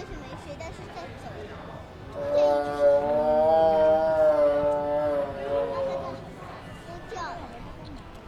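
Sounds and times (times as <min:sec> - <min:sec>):
lion roaring in Peace Park zoo island: 0:02.2 - 0:06.3.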